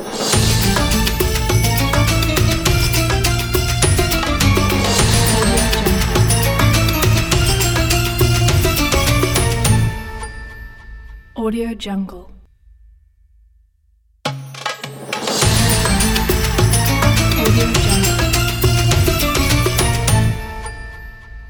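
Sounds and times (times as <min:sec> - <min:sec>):
Ramadan logo music opener: 0:00.2 - 0:10.0, 0:15.3 - 0:20.6.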